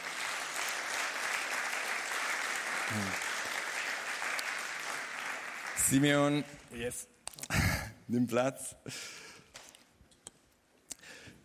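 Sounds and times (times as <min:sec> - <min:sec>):
audience applause: 0:00.0 - 0:06.5
speech: 0:02.9 - 0:03.3, 0:05.9 - 0:07.2, 0:08.1 - 0:09.2.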